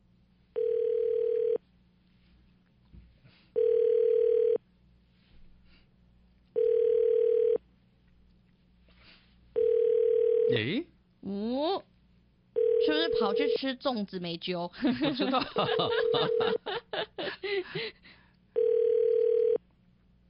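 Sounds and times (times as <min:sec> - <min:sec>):
telephone ringback tone of an outgoing call: 0:00.6 - 0:01.6, 0:03.6 - 0:04.6, 0:06.6 - 0:07.6, 0:09.6 - 0:10.6, 0:12.6 - 0:13.6, 0:15.9 - 0:16.6, 0:18.6 - 0:19.6
speech: 0:13.6 - 0:16.8
laughter: 0:14.8 - 0:18.0.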